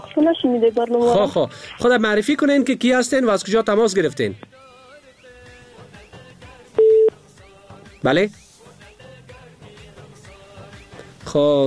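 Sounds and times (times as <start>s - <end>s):
speech: 0.2s - 4.5s, 8.0s - 8.4s, 11.3s - 11.6s
telephone busy tone after a dropped call: 6.8s - 7.1s.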